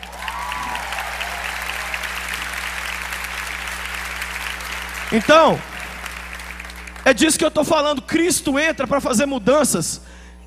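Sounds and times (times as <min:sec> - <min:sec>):
crowd applause: 0:00.0 - 0:07.4
low hum: 0:00.0 - 0:10.4
speech: 0:05.1 - 0:05.7, 0:07.1 - 0:10.2.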